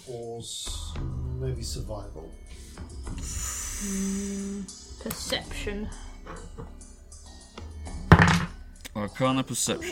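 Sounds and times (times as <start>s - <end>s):
speech: 0.1s - 6.7s, 9.0s - 9.9s
dice rolling on wooden tabletop: 8.1s - 8.5s.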